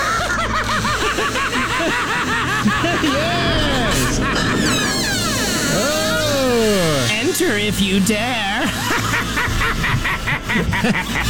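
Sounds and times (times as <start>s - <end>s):
laughter: 0.0s - 11.2s
rhythmic music track: 0.0s - 11.2s
squeaky door creaking: 0.7s - 7.6s
speech: 7.4s - 8.9s, 10.8s - 11.2s.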